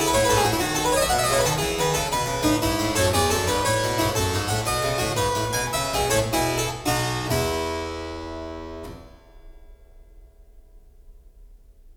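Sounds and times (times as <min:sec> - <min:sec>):
keyboard fugue: 0:00.0 - 0:08.9.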